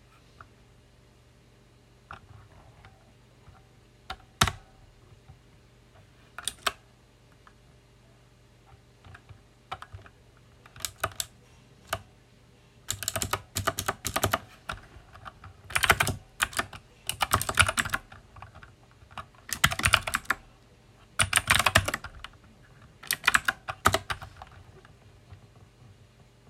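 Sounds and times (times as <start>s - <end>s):
loud mechanical keyboard typing: 4.1s - 4.8s, 6.4s - 6.8s, 9.0s - 12.1s, 12.9s - 20.5s, 21.2s - 25.4s.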